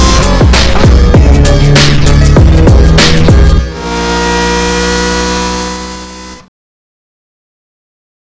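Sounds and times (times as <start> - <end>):
bass: 0.0 - 5.2
Ferrari Enzo engine: 0.0 - 6.5.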